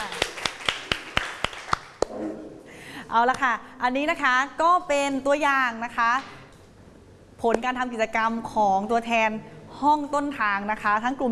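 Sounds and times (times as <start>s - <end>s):
clapping: 0.0s - 2.1s
speech: 3.1s - 6.4s, 7.4s - 11.3s.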